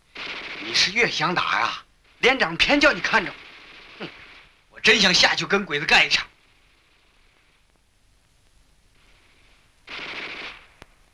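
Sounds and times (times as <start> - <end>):
single sharp crack: 0.0 - 6.3, 9.9 - 11.1
Type 11 light machine gun firing in the distance: 0.1 - 4.6, 9.9 - 10.8
speech: 0.7 - 3.4, 4.0 - 4.2, 4.8 - 6.3.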